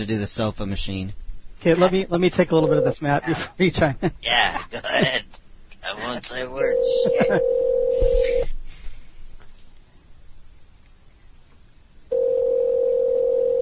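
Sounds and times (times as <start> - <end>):
speech: 0.0 - 8.5
laughter: 3.0 - 5.4, 6.9 - 8.4
telephone ringing: 6.6 - 8.0, 12.1 - 13.6.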